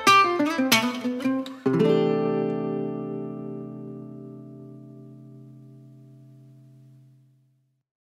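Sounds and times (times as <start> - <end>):
funny gypsy jazz music: 0.0 - 5.8.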